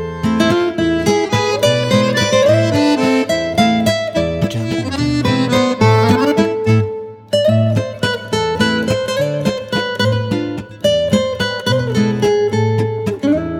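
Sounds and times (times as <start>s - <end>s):
French guitar: 0.0s - 13.5s
accordion: 0.1s - 7.2s.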